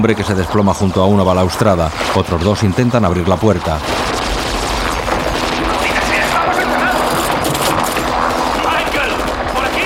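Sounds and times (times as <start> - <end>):
speech: 0.0 - 4.1
gunfire fusillade: 3.8 - 9.8.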